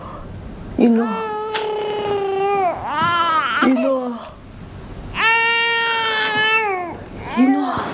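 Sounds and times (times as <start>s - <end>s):
speech: 0.8s - 1.3s
baby fussing and crying for milk: 1.0s - 4.0s, 5.1s - 7.8s.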